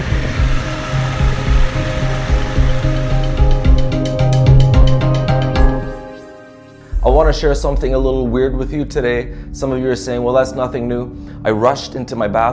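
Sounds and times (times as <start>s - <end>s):
motorcycle riding along a beach: 0.0s - 5.8s
speech: 7.1s - 12.5s.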